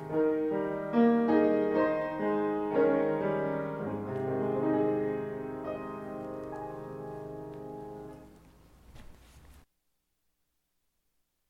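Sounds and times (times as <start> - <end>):
piano piece: 0.0 - 9.0.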